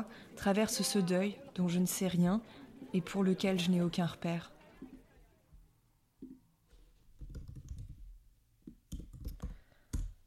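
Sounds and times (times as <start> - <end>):
speech: 0.0 - 4.6
computer keyboard typing: 7.2 - 8.1, 8.9 - 10.1.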